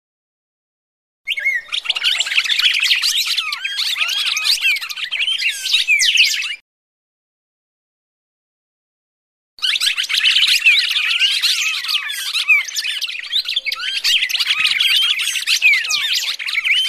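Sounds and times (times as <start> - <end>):
red-crested cardinal fighting calls: 1.3 - 6.6, 9.6 - 16.8.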